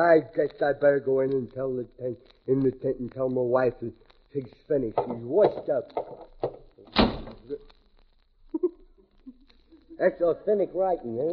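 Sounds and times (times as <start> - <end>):
speech: 0.0 - 6.3, 6.9 - 7.7, 10.0 - 11.3
door swinging shut: 5.0 - 7.5.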